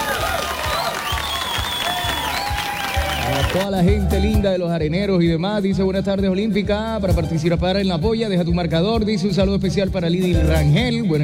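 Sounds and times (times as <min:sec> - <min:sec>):
cheering: 0:00.0 - 0:03.7
crowd applause: 0:00.0 - 0:03.7
whistles: 0:00.6 - 0:03.6
speech: 0:03.5 - 0:11.2.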